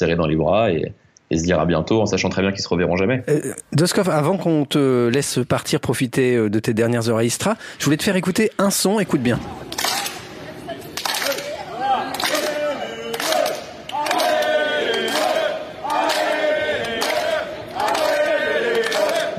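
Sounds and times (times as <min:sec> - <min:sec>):
speech: 0:00.0 - 0:10.0
crowd clapping: 0:09.6 - 0:19.3.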